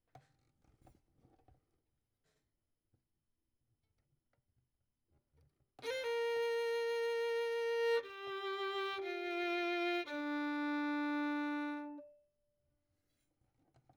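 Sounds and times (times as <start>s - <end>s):
violin: 5.8s - 12.2s.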